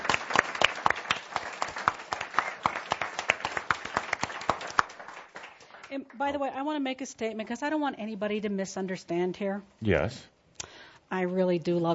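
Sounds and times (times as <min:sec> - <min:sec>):
audience applause: 0:00.0 - 0:05.9
speech: 0:06.0 - 0:10.4, 0:11.1 - 0:11.9.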